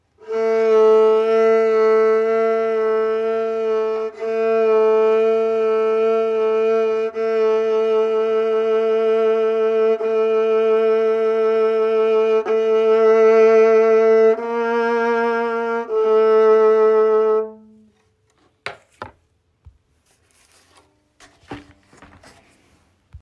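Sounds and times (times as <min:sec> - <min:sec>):
fiddle vibrato: 0:00.2 - 0:17.9.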